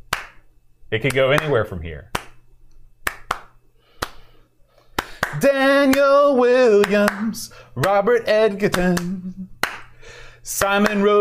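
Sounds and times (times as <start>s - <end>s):
hand claps: 0.0s - 2.4s, 3.0s - 8.0s, 8.6s - 10.0s, 10.6s - 11.1s
speech: 0.9s - 2.2s, 5.4s - 9.5s, 10.4s - 11.1s.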